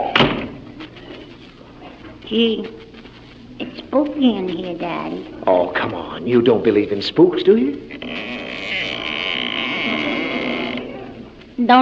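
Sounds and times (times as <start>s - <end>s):
speech: 2.3s - 2.9s, 3.9s - 8.3s, 11.6s - 11.8s
door creaking: 7.9s - 11.2s.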